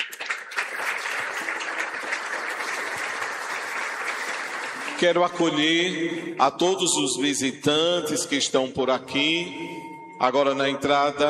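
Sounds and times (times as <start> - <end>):
audience applause: 0.0 - 5.9
speech: 5.0 - 11.2.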